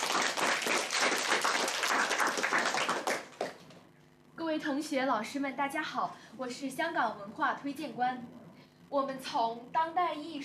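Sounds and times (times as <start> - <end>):
audience applause welcoming a speaker: 0.0 - 3.6
speech: 4.6 - 10.4.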